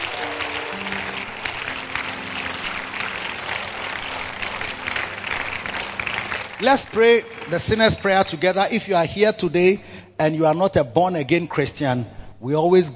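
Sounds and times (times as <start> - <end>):
large crowd clapping hands: 0.0 - 9.4
speech: 6.6 - 12.9.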